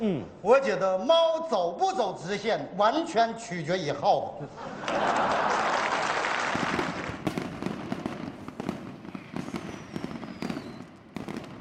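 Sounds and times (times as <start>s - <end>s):
speech: 0.0s - 5.5s
laughter: 4.3s - 6.3s
firecrackers exploding: 6.0s - 11.5s.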